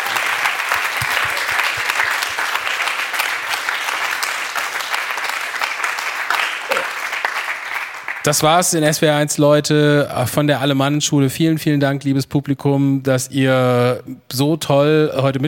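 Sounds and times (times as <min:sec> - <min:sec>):
audience applause: 0:00.0 - 0:08.2
speech: 0:08.2 - 0:15.4.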